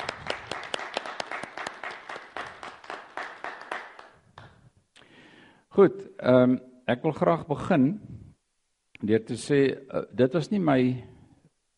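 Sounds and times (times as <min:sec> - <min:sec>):
audience applause: 0:00.0 - 0:04.6
speech: 0:05.8 - 0:08.2, 0:09.0 - 0:11.1.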